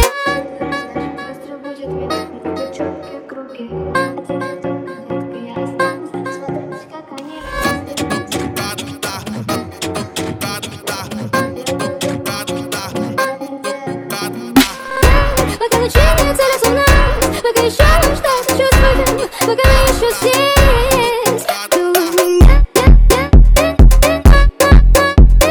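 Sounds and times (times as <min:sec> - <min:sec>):
phonk music: 0:00.0 - 0:01.2, 0:07.2 - 0:25.4.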